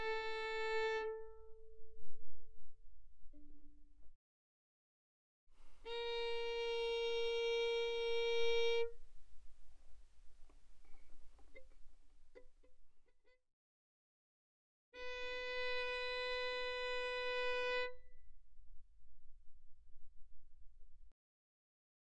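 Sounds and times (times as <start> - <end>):
violin bowed mezzo forte on the D string: 0.0 - 2.0, 5.6 - 12.5, 15.0 - 18.4.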